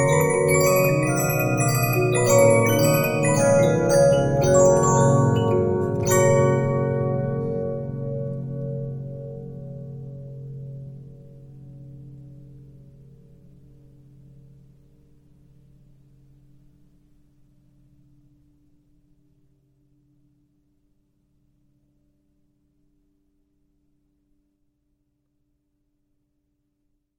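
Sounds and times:
Regina 15-inch disc music box: 0.0 - 9.0.

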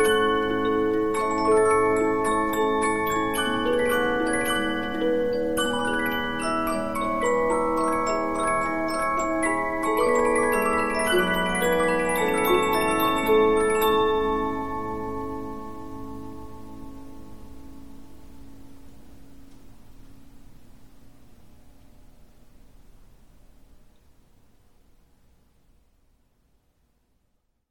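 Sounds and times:
15-inch Polyphon music box playing: 0.0 - 17.4.

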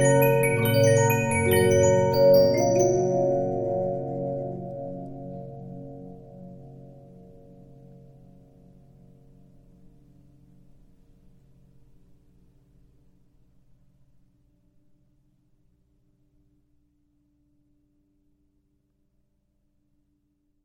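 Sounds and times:
Regina 15-inch disc music box playing: 0.0 - 3.6.

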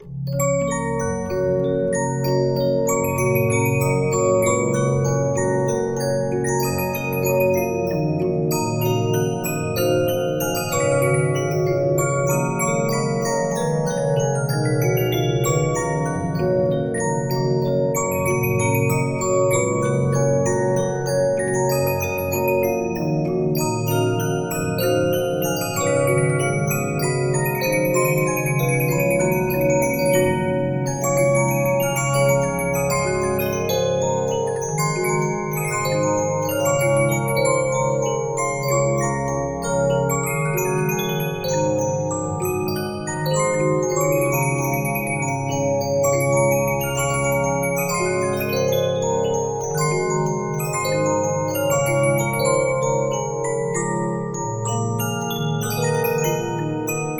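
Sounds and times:
music box melody: 0.0 - 57.1.

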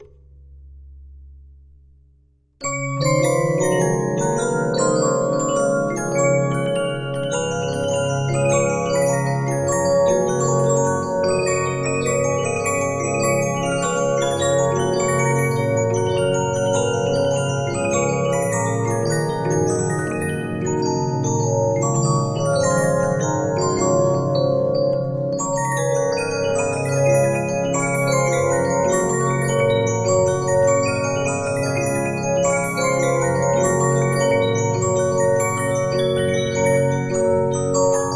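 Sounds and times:
Regina 15-inch disc music box: 2.7 - 38.1.

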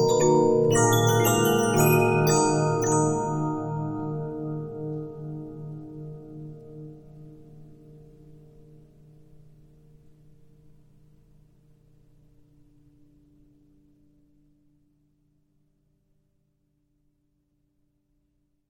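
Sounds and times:
Regina 15-inch disc music box: 0.0 - 5.3.

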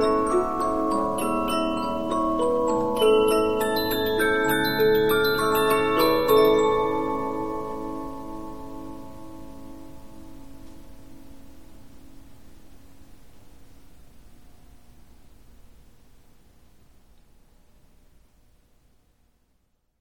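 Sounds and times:
Polyphon 15-inch disc music box playing: 0.0 - 8.8.

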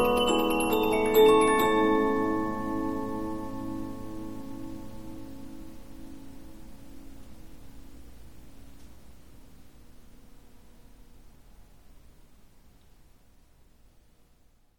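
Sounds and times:
Polyphon 15-inch disc music box playing: 0.0 - 4.7.

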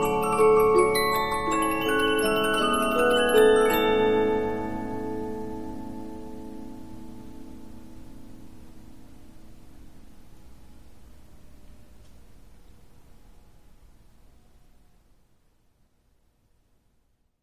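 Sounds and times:
Polyphon 15-inch disc music box playing: 0.0 - 6.3.

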